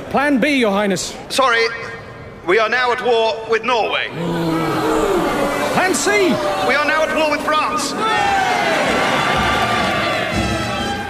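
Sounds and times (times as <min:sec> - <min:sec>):
speech: 0:00.1 - 0:05.0, 0:05.8 - 0:09.5
large crowd cheering and applauding: 0:04.2 - 0:11.0.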